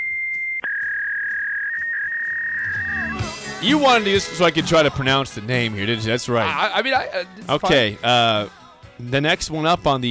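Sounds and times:
fax machine tone: 0:00.7 - 0:03.4
speech: 0:03.6 - 0:10.0.

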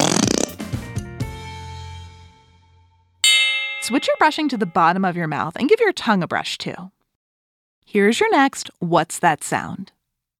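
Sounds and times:
whoopee cushion being sat on: 0:00.0 - 0:00.5
speech: 0:03.9 - 0:07.0, 0:07.9 - 0:10.0.

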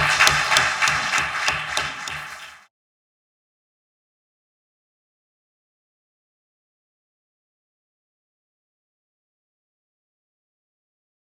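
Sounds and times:
audience applause: 0:00.0 - 0:02.7.

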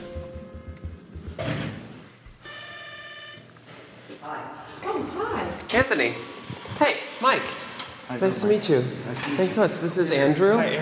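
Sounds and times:
apartment intercom buzzer: 0:02.4 - 0:03.5
speech: 0:05.7 - 0:10.8.

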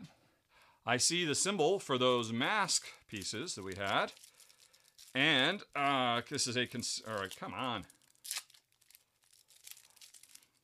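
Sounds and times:
speech: 0:00.8 - 0:04.3, 0:05.2 - 0:08.0
plastic tearing and crinkling: 0:03.1 - 0:05.2, 0:07.0 - 0:10.6
sticky plastic film peeling off board game pieces: 0:03.1 - 0:05.2, 0:07.0 - 0:10.6.

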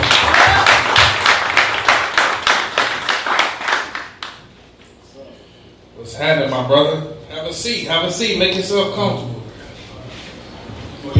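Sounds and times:
rhythmic audience clapping: 0:00.0 - 0:04.7
speech: 0:06.3 - 0:09.3.

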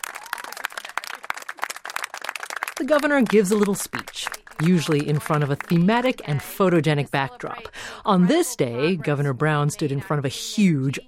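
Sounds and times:
scattered applause from constituents at a governor's bill-signing event: 0:00.0 - 0:06.3
speech: 0:02.8 - 0:11.0.

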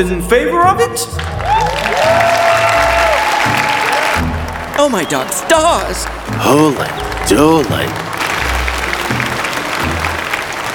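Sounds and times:
speech: 0:00.0 - 0:02.4, 0:04.8 - 0:08.1
crowd clapping and cheering: 0:01.1 - 0:10.7
whoops and shouts: 0:01.4 - 0:04.3.

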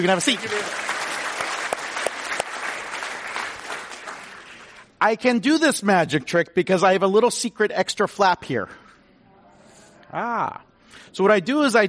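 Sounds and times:
speech: 0:00.0 - 0:00.9, 0:05.0 - 0:08.8, 0:10.1 - 0:11.8
crowd applauding: 0:00.0 - 0:04.9.

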